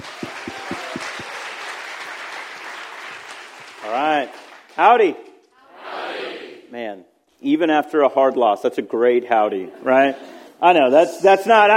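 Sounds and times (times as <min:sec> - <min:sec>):
audience applause: 0:00.0 - 0:04.8
speech: 0:03.9 - 0:05.3, 0:06.9 - 0:11.7.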